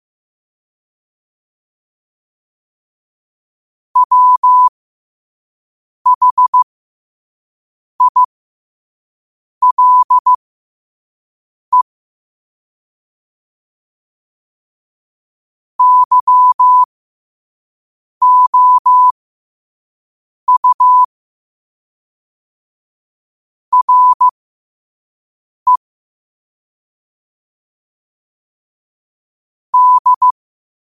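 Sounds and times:
morse code at 5 wpm: 4.0 - 4.7, 6.1 - 6.6, 8.0 - 8.3, 9.6 - 10.4, 15.8 - 16.9, 18.2 - 19.1, 20.5 - 21.1, 23.7 - 24.3, 29.8 - 30.4.

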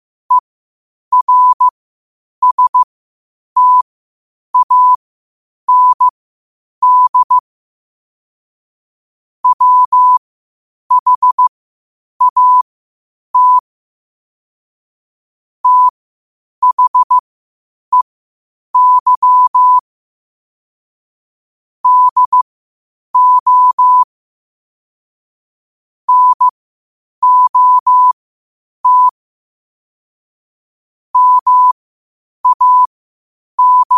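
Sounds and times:
morse code at 5 wpm: 1.1 - 1.7, 2.4 - 2.9, 3.6 - 3.8, 4.6 - 5.0, 5.7 - 6.1, 6.8 - 7.4, 9.4 - 10.2, 10.9 - 11.5, 12.2 - 12.6, 13.4 - 13.6, 15.6 - 15.9, 16.6 - 17.2, 18.8 - 19.8, 21.8 - 22.4, 23.2 - 24.1, 26.1 - 26.5, 27.2 - 28.2, 28.8 - 29.2, 31.2 - 31.8, 32.4 - 32.9, 33.6 - 33.9.

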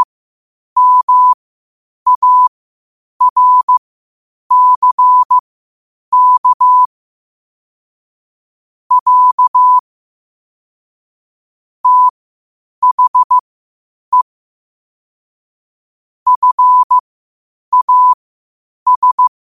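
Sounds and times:
morse code at 5 wpm: 0.8 - 1.4, 2.1 - 2.5, 3.2 - 3.8, 4.5 - 5.4, 6.1 - 6.9, 8.9 - 9.8, 11.8 - 12.1, 12.8 - 13.4, 16.3 - 17.0, 17.7 - 18.2, 18.9 - 19.3.

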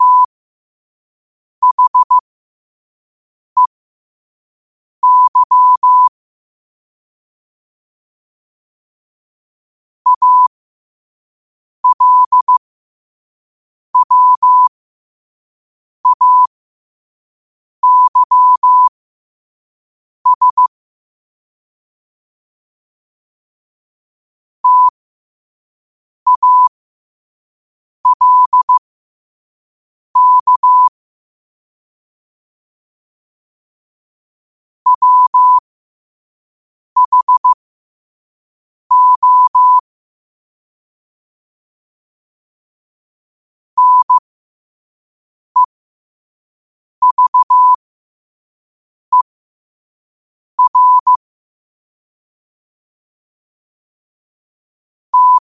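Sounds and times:
morse code at 5 wpm: 0.0 - 0.3, 1.6 - 2.2, 5.0 - 6.1, 10.1 - 10.5, 11.8 - 12.6, 14.0 - 14.7, 16.0 - 16.5, 17.8 - 18.9, 20.3 - 20.7, 24.6 - 24.9, 26.3 - 26.7, 28.0 - 28.8, 30.2 - 30.9, 34.9 - 35.6, 37.0 - 37.6, 38.9 - 39.8, 43.8 - 44.2, 47.0 - 47.8, 50.6 - 51.2, 55.1 - 55.5.

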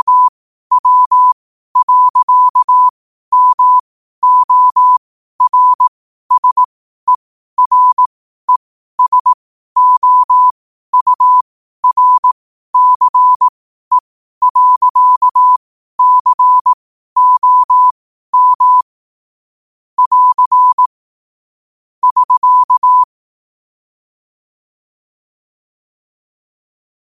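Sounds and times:
morse code at 5 wpm: 0.0 - 18.9, 20.0 - 21.0, 22.0 - 23.1.

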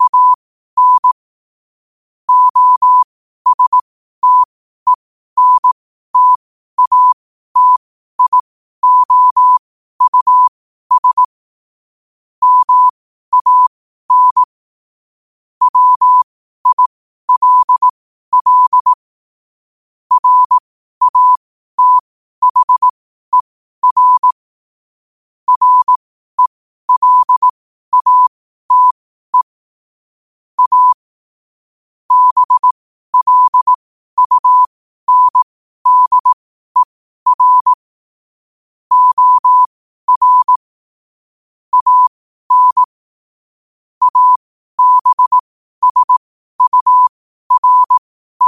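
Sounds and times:
morse code at 5 wpm: 0.0 - 1.2, 2.3 - 11.3, 12.4 - 14.5, 15.6 - 19.0, 20.1 - 24.4, 25.5 - 29.6, 30.6 - 31.0, 32.1 - 37.8, 38.9 - 40.7, 41.7 - 43.0, 44.0 - 48.4.

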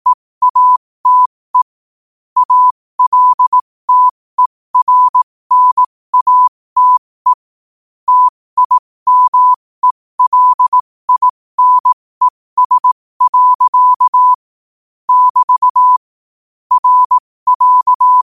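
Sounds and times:
morse code at 5 wpm: 0.4 - 1.7, 2.4 - 4.2, 4.8 - 7.4, 8.1 - 14.4, 15.1 - 16.0, 16.7 - 18.2.

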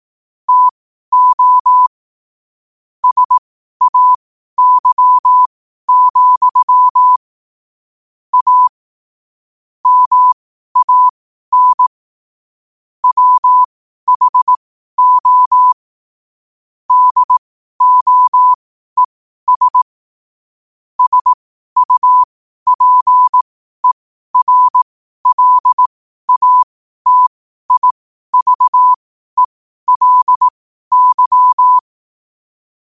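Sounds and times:
morse code at 5 wpm: 0.5 - 1.9, 3.0 - 7.2, 8.3 - 8.7, 9.8 - 11.9, 13.0 - 15.8, 16.9 - 19.8, 21.0 - 31.9.

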